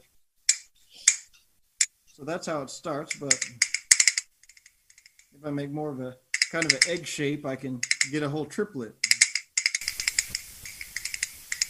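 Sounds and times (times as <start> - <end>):
bones held between fingers clicking together: 0.5 - 2.2, 2.9 - 5.4, 6.2 - 7.1, 7.8 - 11.6
speech: 2.2 - 3.7, 5.4 - 9.0.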